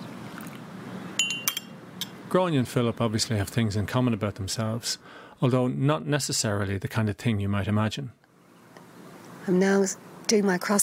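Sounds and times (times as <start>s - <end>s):
low hum: 0.0s - 10.8s
teacup clinking: 1.2s - 2.2s
speech: 2.3s - 8.2s, 9.5s - 10.8s.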